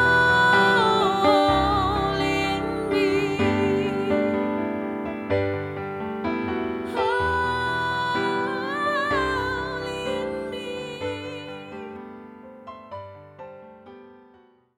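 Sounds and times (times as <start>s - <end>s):
holy soprano singing: 0.0s - 13.0s.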